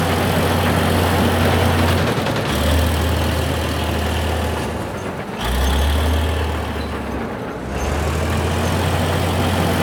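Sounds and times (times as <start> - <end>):
front loader vehicle driving: 0.0 - 9.8.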